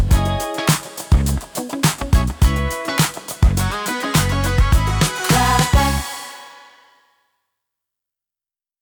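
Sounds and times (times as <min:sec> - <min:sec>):
disco music: 0:00.0 - 0:06.6.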